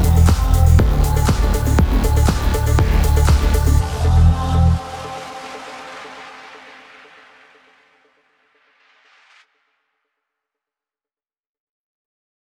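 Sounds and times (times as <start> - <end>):
phonk music: 0.0 - 7.8.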